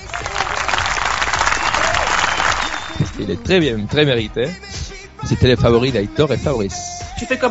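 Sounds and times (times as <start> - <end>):
recorded applause: 0.0 - 3.5
speech: 3.2 - 7.4.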